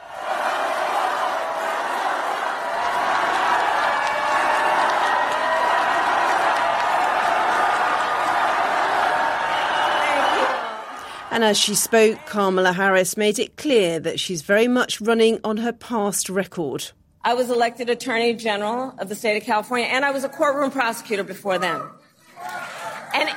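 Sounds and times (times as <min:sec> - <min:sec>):
large audience cheering and chanting for Vice President Kamala Harris: 0:00.0 - 0:12.6
speech: 0:11.4 - 0:22.0.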